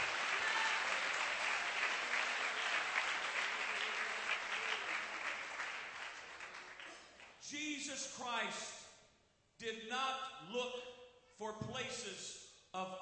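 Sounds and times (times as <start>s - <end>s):
audience clapping hands: 0.0s - 7.4s
speech: 7.5s - 8.8s, 9.6s - 13.0s.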